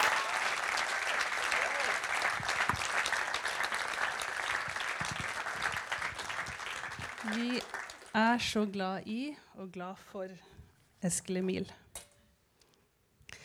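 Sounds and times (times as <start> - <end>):
audience applause: 0.0 - 8.2
speech: 7.3 - 11.8.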